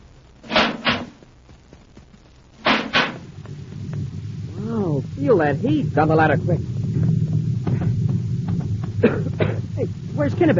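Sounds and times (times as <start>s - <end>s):
low rumble: 0.0s - 10.5s
spaceship inner hatch opening metallic clunks, radio drama effect: 0.5s - 1.2s, 2.6s - 3.3s
speech: 5.3s - 6.7s, 9.8s - 10.5s.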